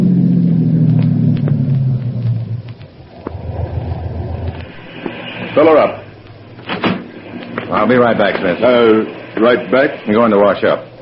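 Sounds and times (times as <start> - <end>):
car engine slowing and idling when pulling into a gas station: 0.0 - 4.8
speech: 7.9 - 10.9.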